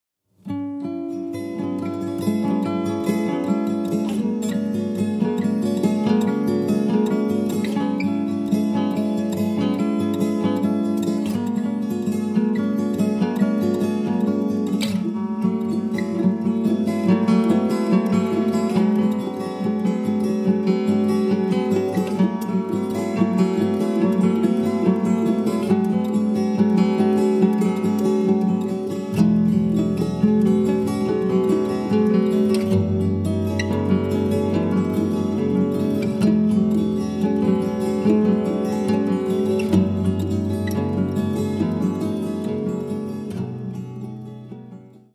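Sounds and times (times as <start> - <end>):
guitar: 0.3 - 45.1.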